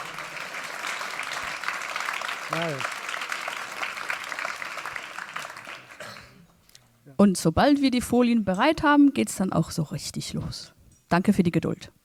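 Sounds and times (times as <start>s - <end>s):
audience applause: 0.0s - 6.2s
speech: 2.5s - 3.0s, 7.2s - 12.0s.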